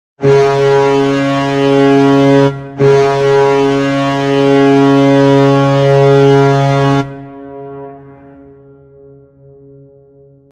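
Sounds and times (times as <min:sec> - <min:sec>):
goal horn: 0:00.2 - 0:08.6.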